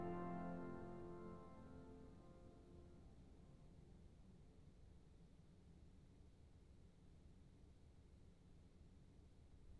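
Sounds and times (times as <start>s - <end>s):
organ fugue in F major: 0.0s - 2.7s.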